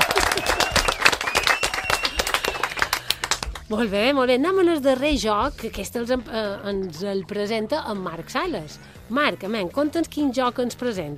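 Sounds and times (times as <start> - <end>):
loud applause: 0.0 - 3.5
speech: 3.7 - 11.1.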